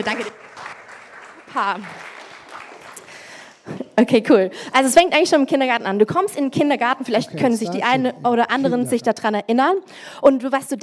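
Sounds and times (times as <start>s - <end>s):
speech: 0.0s - 0.5s, 1.5s - 2.1s, 3.7s - 10.8s
audience applause: 0.0s - 3.7s.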